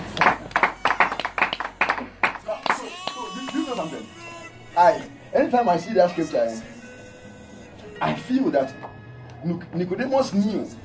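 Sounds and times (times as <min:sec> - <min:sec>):
audience clapping: 0:00.0 - 0:04.0
speech: 0:04.8 - 0:06.7, 0:08.0 - 0:10.8.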